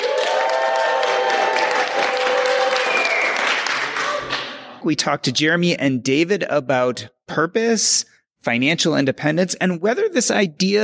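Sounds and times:
people whooping: 0.0 - 4.4
live audience at a camp gathering clapping and cheering: 0.0 - 4.8
speech: 4.8 - 10.8.

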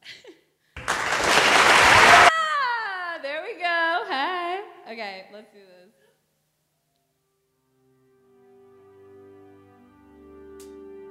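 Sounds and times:
crowd applause sound effect triggered from a button: 0.8 - 2.4.

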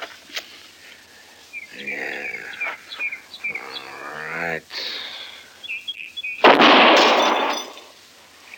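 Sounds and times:
rifle shot from a recently repaired gun steadied on a fence rail: 6.4 - 7.6.

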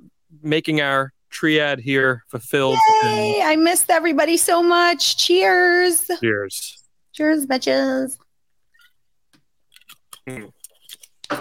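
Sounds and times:
speech: 0.3 - 8.2, 10.3 - 10.6
person gulping a drink: 9.7 - 11.4.

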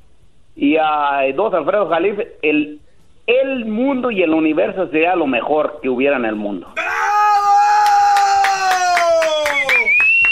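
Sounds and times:
speech: 0.6 - 6.9
audience applause: 7.8 - 10.3.

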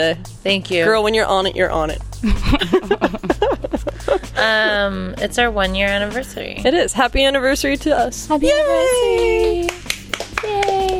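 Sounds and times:
speech: 0.0 - 3.4, 4.1 - 9.8
laughter: 2.2 - 4.8
hand clapping: 8.6 - 10.9.

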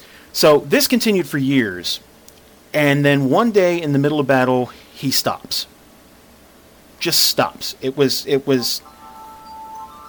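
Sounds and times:
speech: 0.4 - 2.1, 2.7 - 5.7, 7.0 - 9.0
phone ringing: 8.6 - 10.0.

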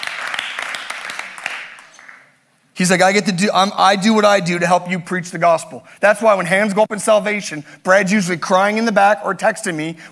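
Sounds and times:
audience clapping: 0.0 - 2.3
speech: 2.8 - 10.1.

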